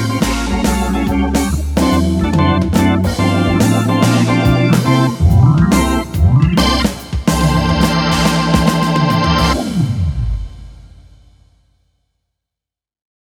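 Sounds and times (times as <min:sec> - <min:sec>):
jazz organ: 0:00.0 - 0:10.0.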